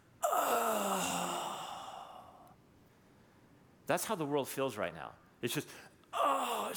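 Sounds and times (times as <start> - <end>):
person's voice imitating a guttural groan: 0.2 - 2.3, 6.2 - 6.7
speech: 3.9 - 6.7.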